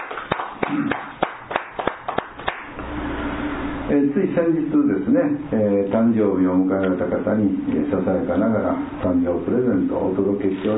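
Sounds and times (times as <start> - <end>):
audience clapping: 0.0 - 2.8
low hum: 0.0 - 10.7
speech: 0.6 - 1.1, 3.9 - 10.7.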